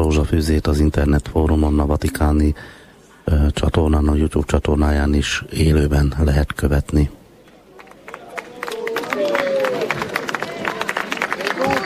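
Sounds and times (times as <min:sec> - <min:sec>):
speech: 0:00.1 - 0:07.2
crowd applauding the arrival of Pope Leo: 0:07.7 - 0:11.8.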